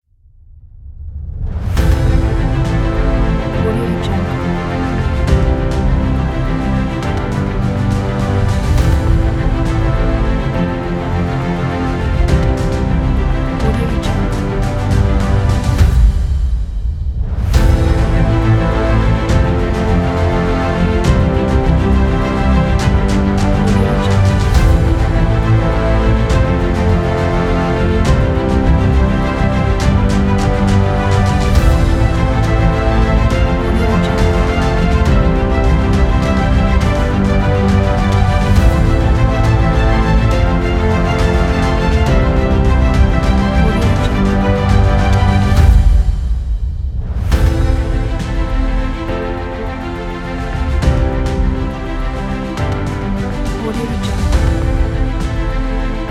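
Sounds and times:
dramatic epic action music: 1.0s - 56.0s.

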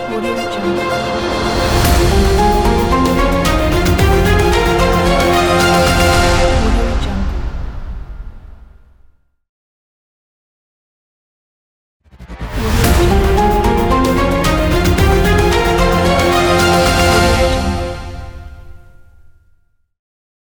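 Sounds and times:
epic trailer news ident music: 0.3s - 8.2s, 12.1s - 18.9s.

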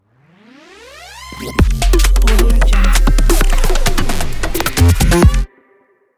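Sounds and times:
glitch intro ident: 1.2s - 5.5s.

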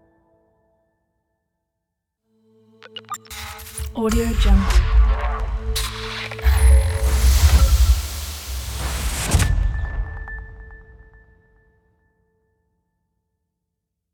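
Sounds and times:
logo intro: 4.6s - 10.1s.

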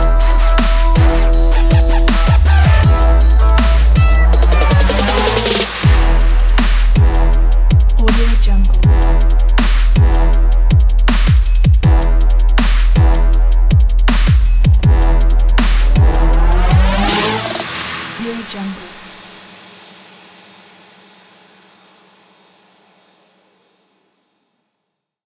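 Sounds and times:
basic trap beat: 0.0s - 19.2s.

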